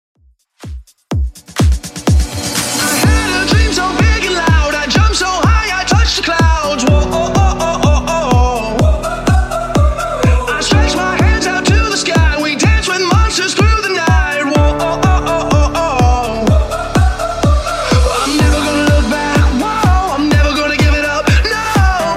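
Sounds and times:
bootleg house music: 0.6 - 22.1.

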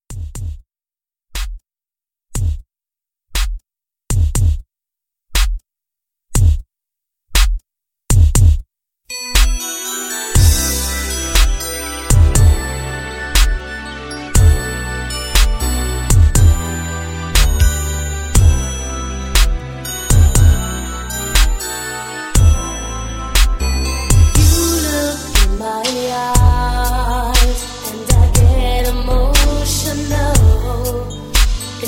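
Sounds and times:
80s pop drum beat: 0.1 - 0.6, 2.4 - 2.6, 3.4 - 4.6, 6.4 - 6.6, 7.4 - 8.6, 10.4 - 10.6, 11.4 - 12.6, 13.4 - 13.6, 14.4 - 14.6, 15.4 - 16.7, 17.4 - 17.7, 18.4 - 18.7, 19.4 - 20.6, 21.4 - 21.6, 22.4 - 22.6, 23.4 - 31.8.

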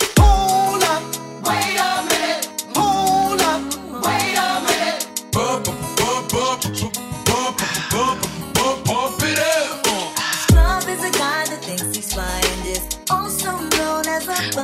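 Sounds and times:
party hype music: 0.2 - 14.6.

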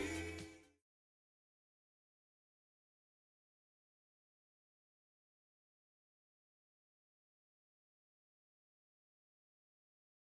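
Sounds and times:
1980s-style music at 124 BPM: 0.0 - 0.8.

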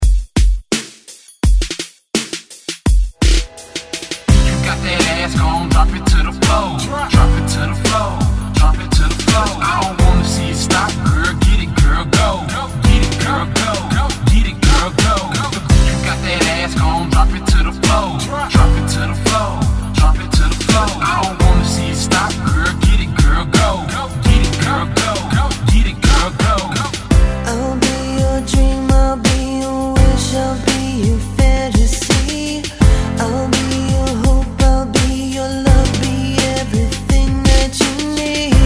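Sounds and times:
90s rock drum beat: 0.0 - 27.5, 28.1 - 38.6.

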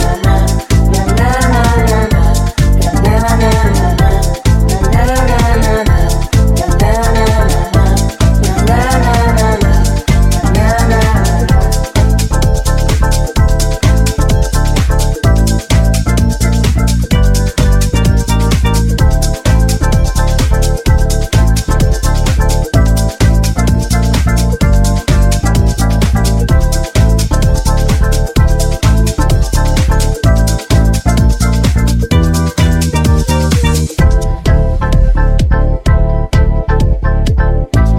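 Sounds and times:
mash up music at 128 bpm: 0.0 - 37.9.

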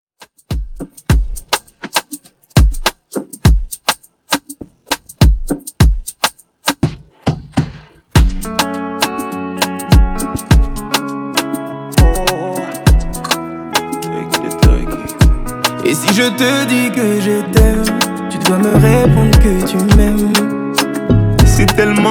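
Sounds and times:
Redrum drum machine beat: 0.2 - 16.3, 17.6 - 22.0.

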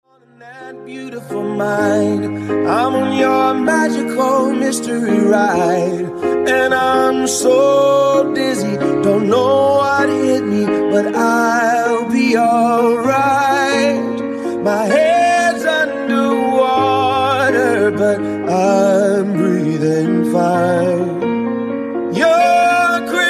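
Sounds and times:
funk bootleg segue: 0.3 - 23.2.

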